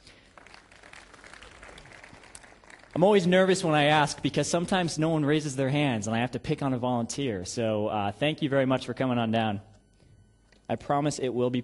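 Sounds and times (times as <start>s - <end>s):
audience applause for a volunteer: 0.0s - 3.4s
speech: 3.0s - 9.7s, 10.7s - 11.6s.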